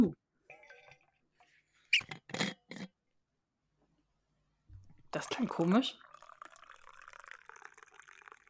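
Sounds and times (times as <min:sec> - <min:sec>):
tea being poured into a cup: 0:04.8 - 0:08.4
speech: 0:05.2 - 0:06.1.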